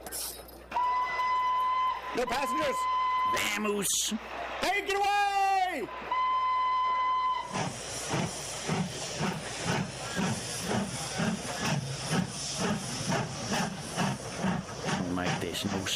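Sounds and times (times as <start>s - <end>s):
steam train whistle: 0.7s - 3.8s, 6.0s - 8.3s
steam train pulling away, chuffing and hissing: 0.8s - 15.9s
speech: 2.2s - 6.3s, 15.4s - 15.9s.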